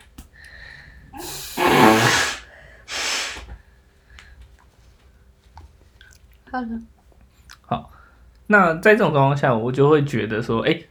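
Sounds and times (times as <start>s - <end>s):
person blowing nose: 1.2s - 3.5s
speech: 6.5s - 7.0s, 7.7s - 10.8s.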